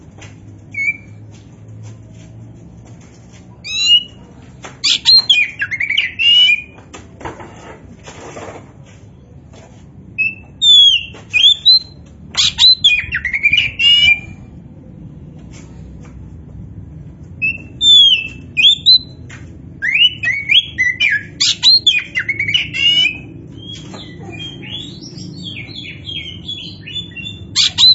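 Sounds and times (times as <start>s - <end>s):
Oriental magpie-robin song: 3.6s - 4.2s, 4.8s - 6.8s, 10.2s - 14.4s, 17.4s - 19.2s, 19.8s - 27.9s.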